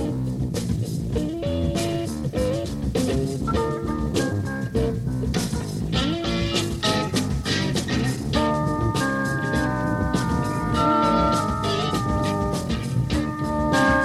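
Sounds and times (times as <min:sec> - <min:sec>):
fuzzy guitar jam: 0:00.0 - 0:14.0.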